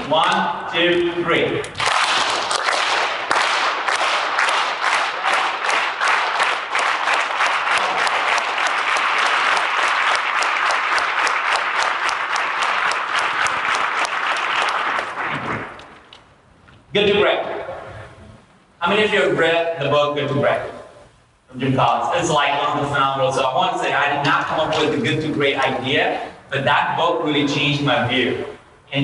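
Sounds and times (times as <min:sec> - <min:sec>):
speech: 0:00.1 - 0:01.9, 0:17.0 - 0:17.5, 0:18.9 - 0:20.7, 0:21.6 - 0:29.0
audience clapping: 0:01.8 - 0:16.2.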